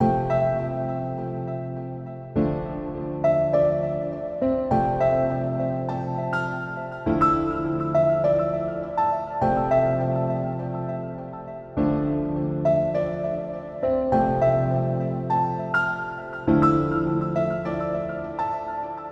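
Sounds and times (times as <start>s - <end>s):
piano: 0.0s - 19.1s.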